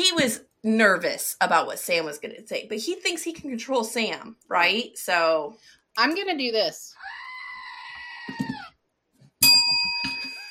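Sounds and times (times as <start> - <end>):
speech: 0.0 - 7.2, 8.3 - 8.6
goat screaming sound effect: 7.0 - 8.8.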